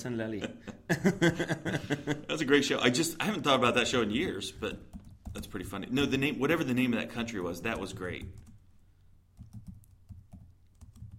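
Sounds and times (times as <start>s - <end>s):
speech: 0.0s - 8.5s
laughter: 0.3s - 2.3s
computer keyboard typing: 4.2s - 6.0s, 7.4s - 8.6s, 9.4s - 11.1s.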